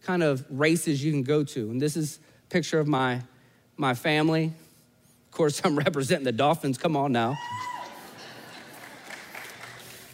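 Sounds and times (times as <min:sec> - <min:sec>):
speech: 0:00.0 - 0:04.6, 0:05.4 - 0:07.8
audience standing cheering and applauding: 0:07.5 - 0:10.1.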